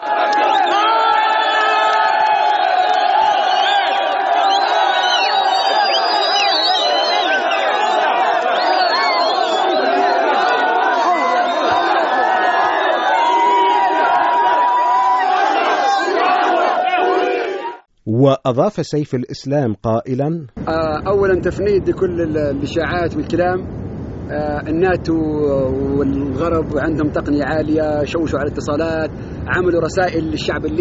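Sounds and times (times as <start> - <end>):
crowd of supporters chanting and cheering: 0.0 - 17.9
speech: 18.4 - 30.8.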